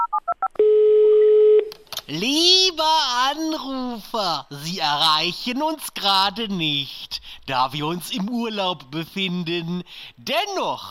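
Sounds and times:
steady single telephone tone: 0:00.0 - 0:01.7
speech: 0:02.1 - 0:10.8.

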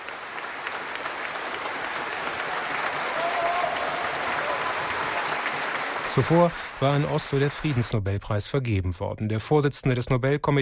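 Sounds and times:
large crowd applause at ceremony: 0:00.0 - 0:08.0
speech: 0:06.1 - 0:10.6.

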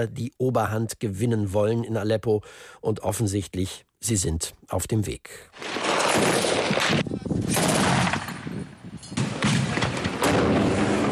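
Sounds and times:
speech: 0:00.0 - 0:07.8
artillery and mortar fire in a war zone around a besieged city: 0:05.6 - 0:11.1.

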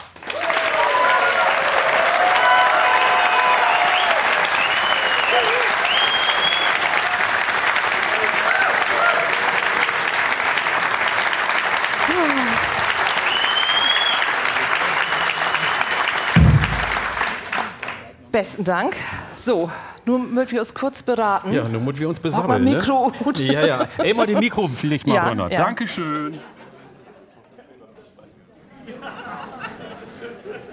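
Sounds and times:
audience applause: 0:00.0 - 0:18.1
whistles: 0:03.9 - 0:06.8, 0:13.1 - 0:15.6
speech: 0:18.4 - 0:26.6
laughter: 0:22.6 - 0:25.5, 0:26.1 - 0:30.7.

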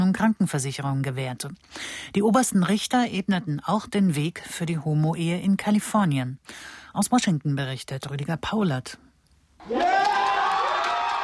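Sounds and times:
speech: 0:00.1 - 0:10.1
crowd cheering and whooping outside the US Supreme Court in Washington: 0:09.6 - 0:11.2.

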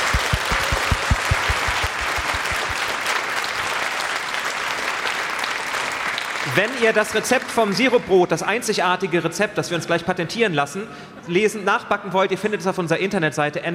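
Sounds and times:
audience applause: 0:00.0 - 0:07.5
speech: 0:06.6 - 0:13.7.

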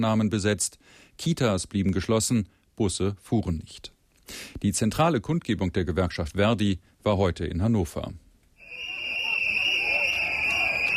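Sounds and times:
speech: 0:00.0 - 0:08.2
protesters blowing shrill whistles: 0:08.6 - 0:10.9.

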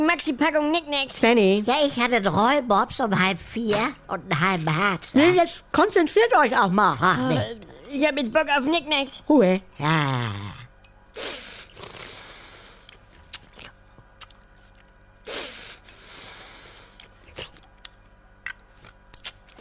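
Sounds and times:
speech: 0:00.1 - 0:10.6, 0:11.2 - 0:11.4
slurping: 0:11.2 - 0:19.6.

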